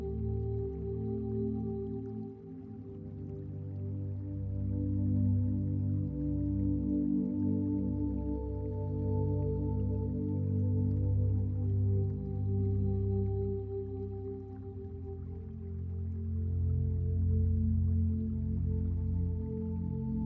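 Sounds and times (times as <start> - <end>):
gentle stream flowing: 0.0 - 20.1.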